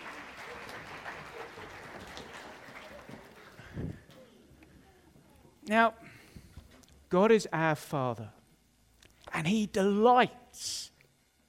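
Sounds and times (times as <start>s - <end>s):
small group clapping: 0.0s - 4.3s
speech: 5.7s - 6.0s, 7.1s - 8.4s, 9.4s - 10.8s.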